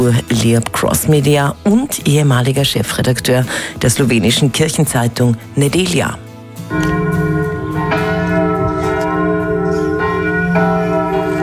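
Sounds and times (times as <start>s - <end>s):
speech: 0.0s - 7.0s
church bells of the Basilica of San Francesco in Assisi ringing: 6.7s - 11.4s.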